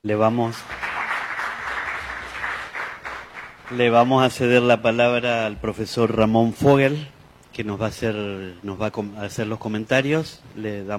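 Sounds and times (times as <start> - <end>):
speech: 0.0 - 0.8, 3.7 - 10.9
audience applause: 0.6 - 4.3.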